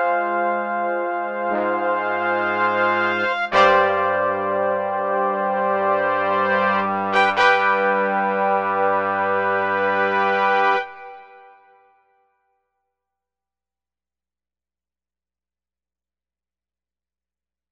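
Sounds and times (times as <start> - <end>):
orchestral trumpets: 0.0 - 11.8.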